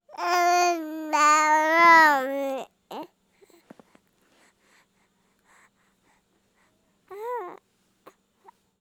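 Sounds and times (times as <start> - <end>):
baby babbling pleasantly: 0.1 - 3.1, 7.1 - 7.6.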